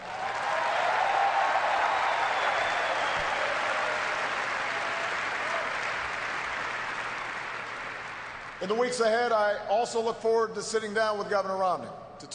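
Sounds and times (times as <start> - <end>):
audience applause: 0.0 - 8.6
speech: 8.6 - 12.3.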